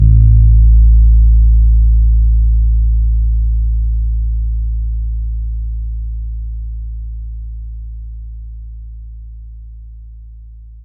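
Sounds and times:
synth double bass playing A: 0.0 - 5.0.

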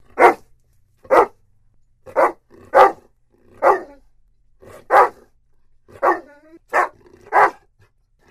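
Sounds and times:
dog barking: 0.1 - 0.5, 1.1 - 1.4, 2.1 - 4.0, 4.7 - 5.3, 6.0 - 7.7.

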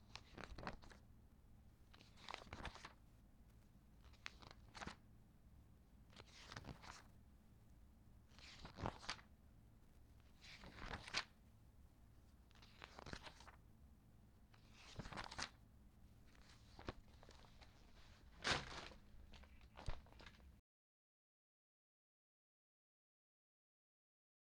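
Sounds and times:
magazine pages flipping: 0.1 - 1.0, 2.0 - 3.0, 4.2 - 5.0, 8.4 - 9.2, 10.6 - 11.3, 12.6 - 13.6, 14.6 - 15.5, 16.4 - 20.5.

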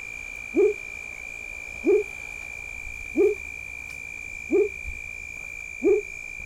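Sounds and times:
frog call: 0.5 - 0.9, 1.7 - 2.4, 3.1 - 3.6, 4.4 - 5.0, 5.8 - 6.4.

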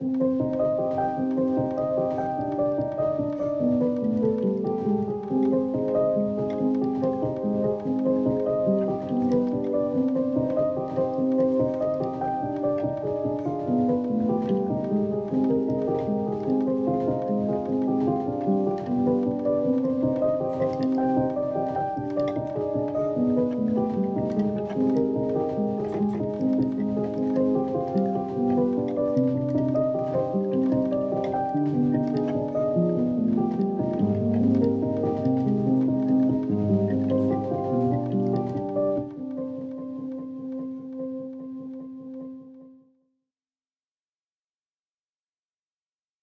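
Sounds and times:
piano loop: 0.0 - 42.8.

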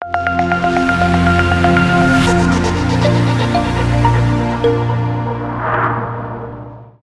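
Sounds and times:
tech logo intro music: 0.1 - 7.0.

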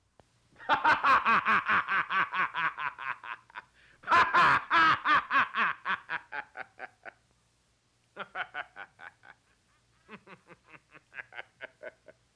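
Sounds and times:
man laughing heartily: 0.6 - 7.2, 8.2 - 12.3.

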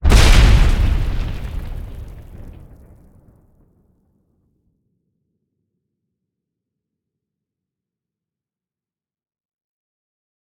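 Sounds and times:
powerful explosion: 0.0 - 3.2.

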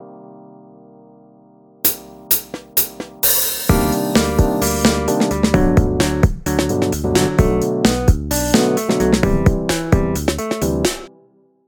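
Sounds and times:
intro and outro music: 1.9 - 11.1.

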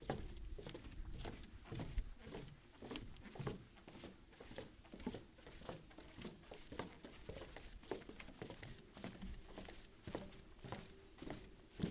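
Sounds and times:
walking footsteps on wooden bridge: 0.0 - 11.9.

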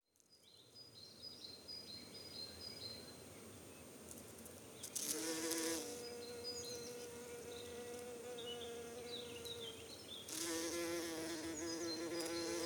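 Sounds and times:
bumblebee flight buzz: 5.0 - 9.6, 10.3 - 12.6.

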